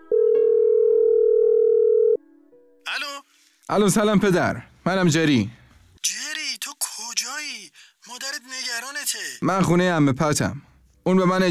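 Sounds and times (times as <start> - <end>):
telephone ringing tone as someone phones a parent: 0.0 - 2.2
speech: 3.7 - 6.2, 9.4 - 11.4.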